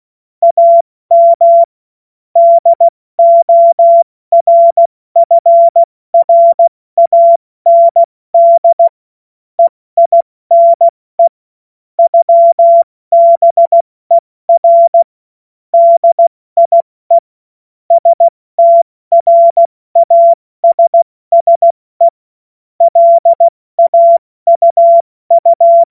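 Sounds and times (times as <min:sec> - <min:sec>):
CW Morse code beeps: 0:00.4 - 0:01.7, 0:02.4 - 0:08.9, 0:09.6 - 0:11.4, 0:12.0 - 0:13.8, 0:14.6 - 0:15.1, 0:15.8 - 0:17.2, 0:17.9 - 0:22.1, 0:22.8 - 0:25.8.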